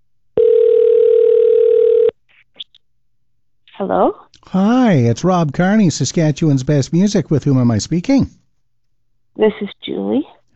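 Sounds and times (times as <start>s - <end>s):
telephone dial tone: 0.4s - 2.1s
speech: 3.8s - 8.4s, 9.4s - 10.4s.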